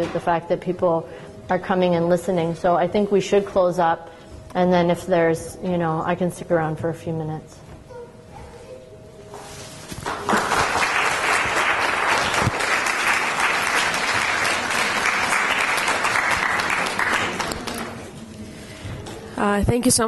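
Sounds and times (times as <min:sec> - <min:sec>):
speech: 0:00.0 - 0:07.6, 0:19.6 - 0:20.0
crowd applauding: 0:10.0 - 0:18.1.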